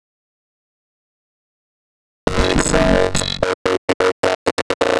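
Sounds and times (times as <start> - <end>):
vocoder voice: 2.3 - 4.9.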